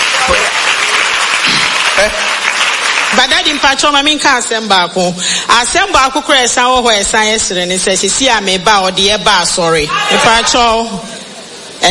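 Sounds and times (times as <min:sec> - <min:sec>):
audience clapping: 0:00.0 - 0:04.1
speech: 0:02.0 - 0:02.5, 0:03.1 - 0:11.1.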